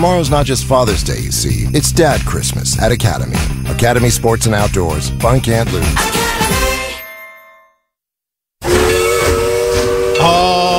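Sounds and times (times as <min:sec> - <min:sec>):
speech: 0:00.0 - 0:06.7
steam train whistle: 0:08.6 - 0:10.7.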